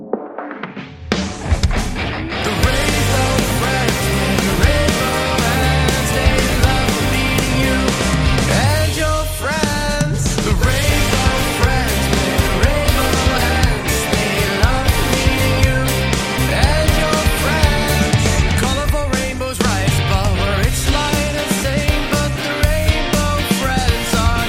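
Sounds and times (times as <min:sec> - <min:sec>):
rock music: 0:00.3 - 0:24.4.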